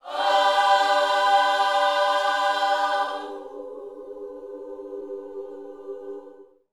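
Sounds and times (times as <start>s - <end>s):
youth choir singing gospel phrase: 0.0s - 6.6s.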